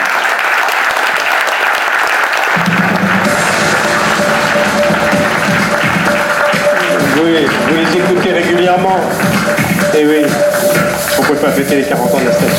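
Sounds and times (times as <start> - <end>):
audience applauding: 0.0 - 12.5
speech: 7.3 - 12.5.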